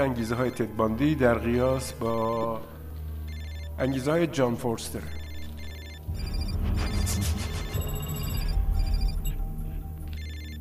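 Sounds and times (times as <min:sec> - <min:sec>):
speech: 0:00.0 - 0:02.7, 0:03.8 - 0:05.2
telephone ringing: 0:03.2 - 0:04.2, 0:05.0 - 0:10.5.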